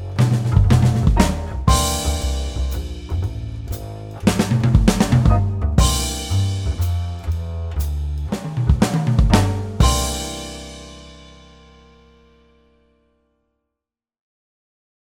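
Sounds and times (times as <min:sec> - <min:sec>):
swing drum fills: 0:00.0 - 0:12.0.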